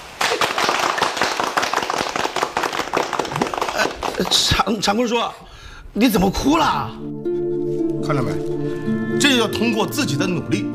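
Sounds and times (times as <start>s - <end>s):
group of people applauding: 0.0s - 4.9s
speech: 4.2s - 5.4s, 6.0s - 7.1s, 8.1s - 8.5s, 9.2s - 10.7s.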